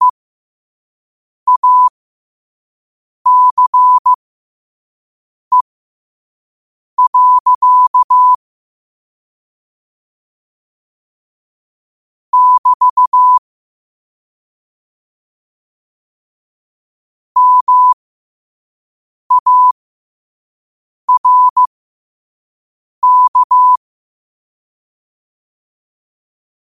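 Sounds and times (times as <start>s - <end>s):
morse code at 5 wpm: 1.5s - 1.9s, 3.3s - 4.2s, 7.0s - 8.4s, 12.4s - 13.4s, 17.4s - 18.0s, 19.3s - 19.8s, 21.1s - 21.7s, 23.0s - 23.8s.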